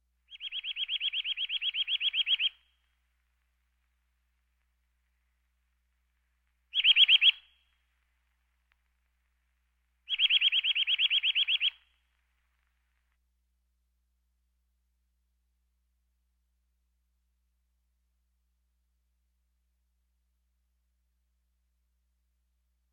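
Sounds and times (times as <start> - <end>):
birds: 0.3 - 2.7, 6.7 - 7.8, 10.0 - 12.1.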